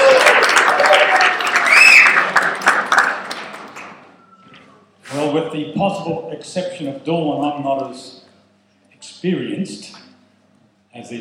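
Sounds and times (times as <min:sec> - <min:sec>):
audience applause: 0:00.0 - 0:04.1
speech: 0:05.6 - 0:08.2, 0:09.1 - 0:10.0, 0:10.9 - 0:11.1.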